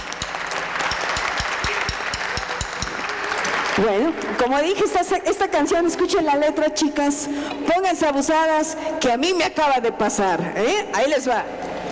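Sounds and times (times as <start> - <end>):
audience applause: 0.0 - 4.2
speech: 3.8 - 11.6.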